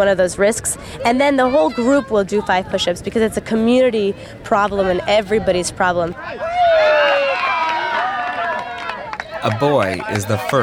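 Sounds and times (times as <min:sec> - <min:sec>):
speech: 0:00.0 - 0:07.0, 0:09.4 - 0:10.6
children cheering and shouting during a soccer cone-dribbling drill: 0:06.2 - 0:10.6.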